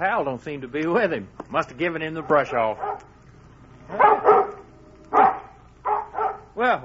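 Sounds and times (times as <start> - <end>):
speech: 0.0 - 3.1, 3.9 - 4.2, 6.6 - 6.8
dog barking excitedly: 2.2 - 3.1, 3.9 - 6.6.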